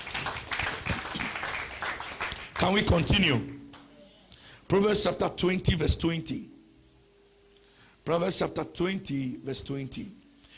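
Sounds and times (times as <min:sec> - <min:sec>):
church congregation clapping hands: 0:00.0 - 0:03.9
speech: 0:02.7 - 0:03.6, 0:04.7 - 0:06.5, 0:08.0 - 0:10.2.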